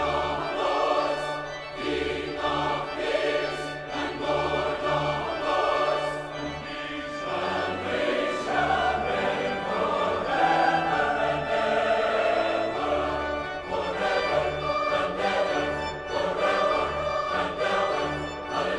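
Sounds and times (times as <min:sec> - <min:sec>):
choir singing: 0:00.0 - 0:18.7.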